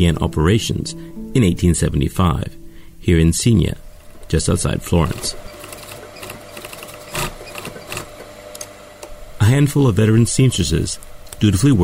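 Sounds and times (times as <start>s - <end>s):
speech: 0.0s - 5.4s, 9.5s - 11.8s
antique foot-pedal sewing machines whirring in the Grevi hat workshop in Signa: 4.0s - 9.1s.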